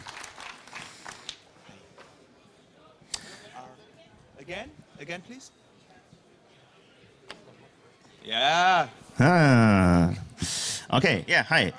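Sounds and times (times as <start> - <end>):
crowd clapping: 0.0 - 1.6
speech: 4.5 - 5.6, 8.3 - 10.2, 10.9 - 11.7.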